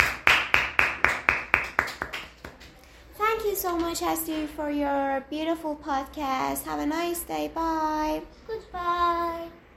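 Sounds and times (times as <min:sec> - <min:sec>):
hand clapping: 0:00.0 - 0:02.8
speech: 0:03.6 - 0:09.6.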